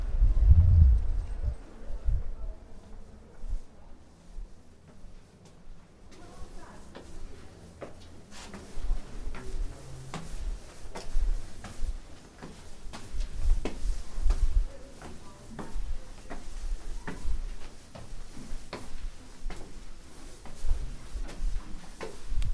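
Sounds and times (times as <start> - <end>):
low rumble: 0.0 - 2.6
footsteps on a walk through Prague: 0.8 - 22.5.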